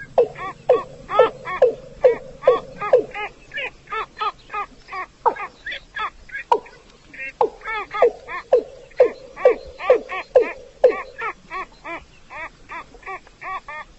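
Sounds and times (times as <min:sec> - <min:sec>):
rail nasal calls: 0:00.0 - 0:04.2, 0:07.4 - 0:11.8.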